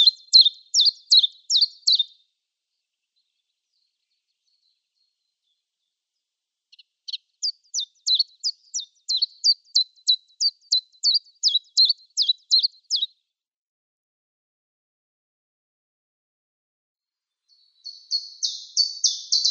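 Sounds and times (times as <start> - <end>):
common chiffchaff song: 0.0 - 13.2, 17.5 - 19.5.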